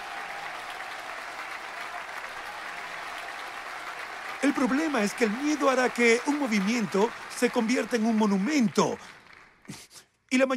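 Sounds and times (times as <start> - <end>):
crowd shouting: 0.0 - 7.6
crowd clapping: 0.0 - 9.9
speech: 4.4 - 10.5.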